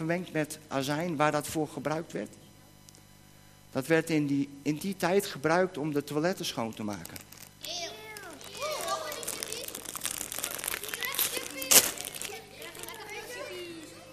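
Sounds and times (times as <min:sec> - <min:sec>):
speech: 0:00.0 - 0:02.4, 0:03.7 - 0:07.9
bag of vinegar-flavoured crisps rustling: 0:06.9 - 0:13.6
children talking: 0:07.6 - 0:14.1
loud crunch: 0:08.2 - 0:12.5.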